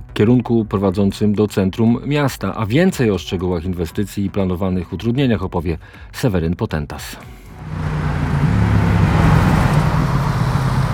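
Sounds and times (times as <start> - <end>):
speech: 0.2 - 7.9
busy road traffic: 7.5 - 10.9.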